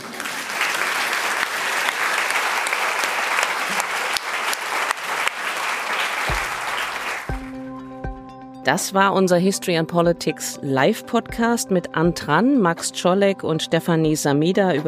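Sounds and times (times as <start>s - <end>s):
audience applause: 0.0s - 7.6s
speech: 8.7s - 14.8s.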